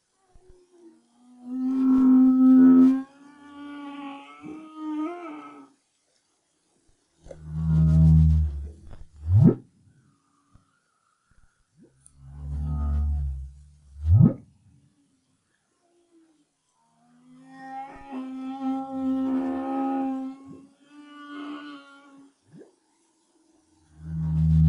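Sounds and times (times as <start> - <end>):
humpback whale singing: 1.3 - 5.7, 7.3 - 9.6, 11.8 - 14.4, 17.0 - 22.8, 24.0 - 24.6.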